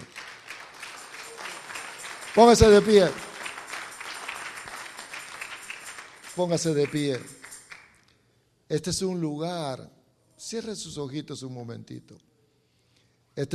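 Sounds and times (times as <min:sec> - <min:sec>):
audience applauding: 0:00.0 - 0:08.0
speech: 0:02.4 - 0:03.2, 0:06.4 - 0:07.4, 0:08.7 - 0:12.3.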